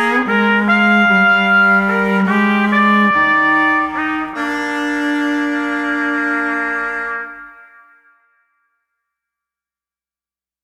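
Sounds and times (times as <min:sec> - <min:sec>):
cello in a small duo: 0:00.0 - 0:07.5
trumpet in a small duo: 0:00.0 - 0:08.7.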